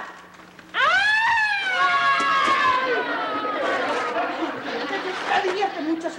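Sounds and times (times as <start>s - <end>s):
ambulance siren: 0.8s - 3.9s
laughter: 2.2s - 6.1s.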